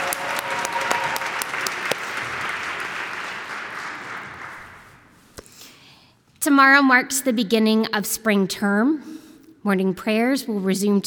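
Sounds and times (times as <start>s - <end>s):
audience applause: 0.0s - 5.0s
speech: 6.4s - 11.0s.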